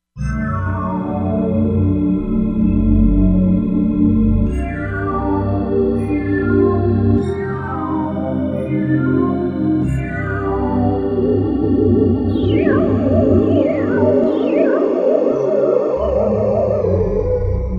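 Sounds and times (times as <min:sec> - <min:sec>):
Korg MSC-07S synth: 0:00.3 - 0:17.7.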